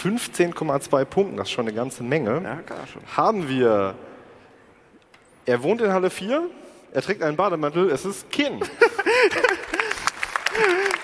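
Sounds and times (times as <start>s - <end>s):
speech: 0.0s - 4.1s, 5.5s - 9.8s, 10.6s - 10.8s
laughter: 8.6s - 11.0s
audience clapping: 9.2s - 11.0s.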